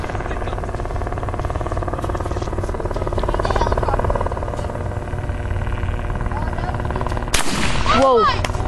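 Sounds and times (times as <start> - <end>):
continuous rumbling roar: 0.0 - 8.6
shotgun blast: 7.3 - 8.4.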